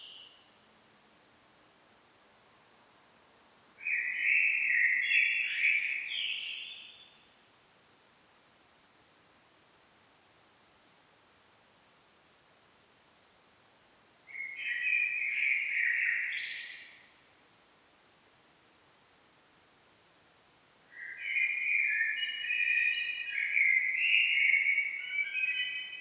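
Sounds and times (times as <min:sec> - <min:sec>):
hiss: 0:00.0 - 0:25.9
common blackbird singing: 0:03.8 - 0:07.0, 0:14.3 - 0:17.5, 0:20.8 - 0:25.9.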